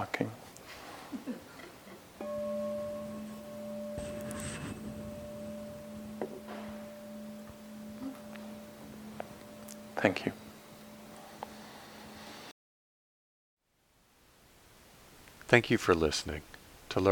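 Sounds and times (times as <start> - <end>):
meditation bell ringing: 2.2 - 12.3
speech: 10.0 - 10.4, 15.5 - 17.1.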